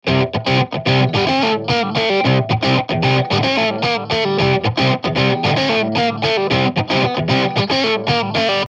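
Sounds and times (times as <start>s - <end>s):
catchy rock music: 0.0s - 8.6s.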